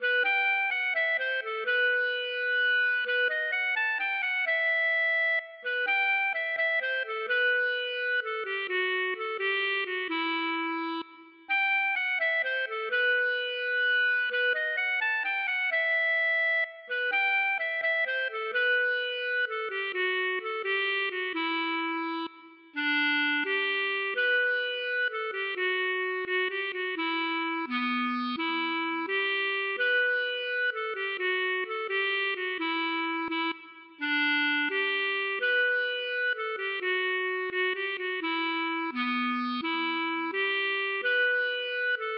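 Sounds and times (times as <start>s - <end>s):
waltz music: 0.0s - 42.1s.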